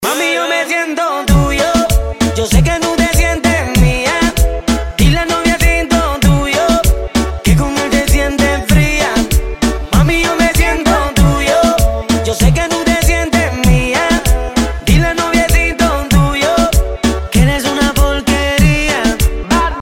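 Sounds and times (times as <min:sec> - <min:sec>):
remix music: 0:00.0 - 0:19.8.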